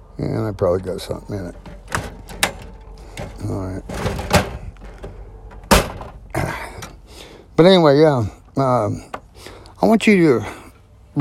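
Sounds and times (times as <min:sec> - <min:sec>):
speech: 0:00.2 - 0:01.8, 0:03.2 - 0:04.3, 0:07.6 - 0:09.2, 0:09.8 - 0:10.6
door slamming shut: 0:01.6 - 0:06.5.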